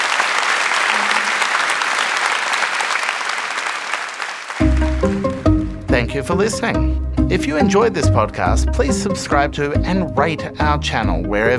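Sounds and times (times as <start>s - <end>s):
audience applause: 0.0s - 5.8s
speech: 6.0s - 11.5s.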